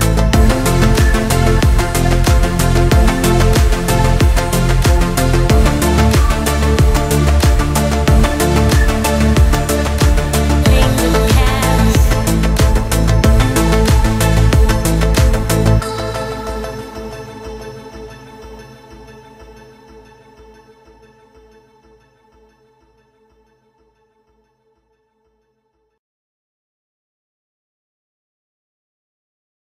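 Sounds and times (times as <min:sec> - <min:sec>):
EDM house trance music: 0:00.0 - 0:21.8.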